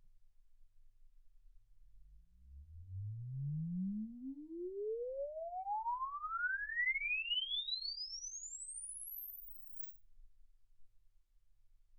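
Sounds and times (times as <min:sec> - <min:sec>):
exponential sine sweep from 10 Hz to 24 kHz: 0:02.5 - 0:09.9.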